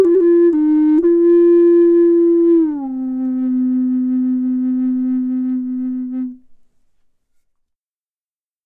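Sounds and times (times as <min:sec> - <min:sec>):
Amerindian flute: 0:00.0 - 0:06.6.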